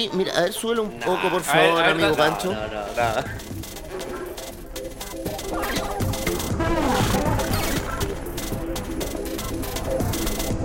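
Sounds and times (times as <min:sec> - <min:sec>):
speech: 0:00.0 - 0:03.6
techno music made from fart sounds: 0:01.6 - 0:10.6.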